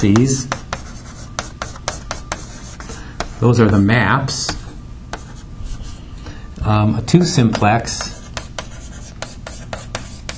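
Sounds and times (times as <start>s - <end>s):
speech: 0.0s - 0.6s, 3.4s - 4.6s, 6.6s - 8.2s
scratchy strokes drawing a triangle during a mathematics lecture: 0.5s - 3.8s, 7.9s - 10.3s.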